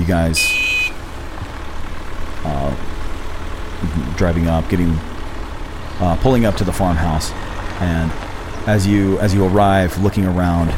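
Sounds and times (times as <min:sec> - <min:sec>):
speech: 0:00.1 - 0:00.7, 0:03.8 - 0:05.1, 0:06.0 - 0:10.7
car horn honking: 0:00.3 - 0:01.1.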